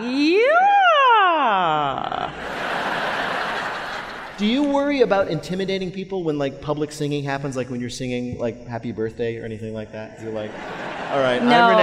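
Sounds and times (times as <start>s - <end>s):
voice imitating a siren: 0.0s - 2.3s
laughter: 1.8s - 4.9s, 10.2s - 11.8s
speech: 4.4s - 11.8s.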